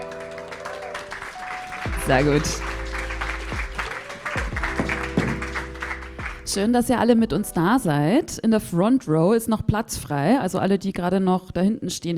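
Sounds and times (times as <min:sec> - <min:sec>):
small audience applause: 0:00.0 - 0:06.5
speech: 0:02.1 - 0:02.7, 0:06.5 - 0:12.1.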